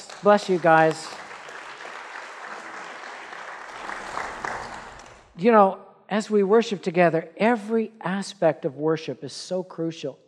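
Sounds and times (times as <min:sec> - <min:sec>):
audience applause for the worship team: 0:00.0 - 0:05.3
speech: 0:00.2 - 0:01.2, 0:05.4 - 0:10.2.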